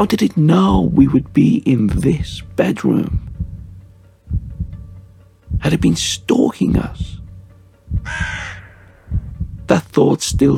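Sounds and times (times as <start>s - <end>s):
speech: 0.0s - 3.3s, 5.6s - 7.2s, 8.0s - 8.5s, 9.7s - 10.5s
crow cawing: 8.0s - 9.1s.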